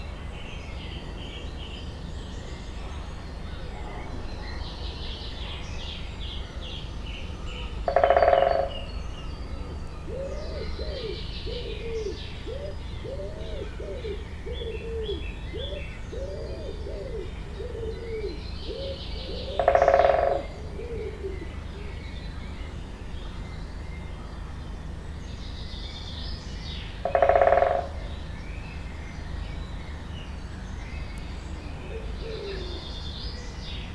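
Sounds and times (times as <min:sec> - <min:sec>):
faint background birdsong: 0:00.0 - 0:33.9
low background hum: 0:00.0 - 0:33.9
woodpecker drumming: 0:07.8 - 0:08.9, 0:18.8 - 0:21.3, 0:26.9 - 0:28.2
doves cooing: 0:07.9 - 0:08.8, 0:10.0 - 0:22.1, 0:27.0 - 0:28.1, 0:31.8 - 0:33.0.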